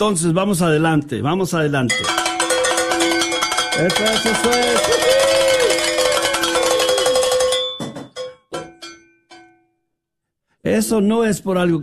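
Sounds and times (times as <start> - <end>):
speech: 0.0 - 2.2, 3.8 - 5.1, 10.8 - 11.8
bells ringing to celebrate reached goal: 1.9 - 9.8.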